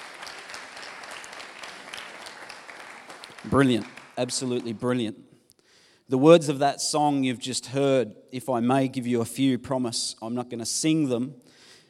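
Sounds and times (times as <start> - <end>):
round of applause: 0.0 - 4.8
speech: 3.4 - 5.3, 6.1 - 11.6.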